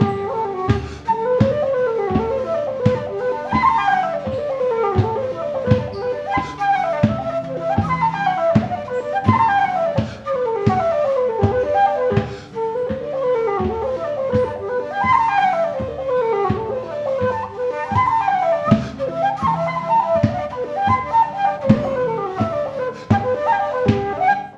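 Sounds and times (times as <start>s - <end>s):
pub flute: 0.0s - 24.5s.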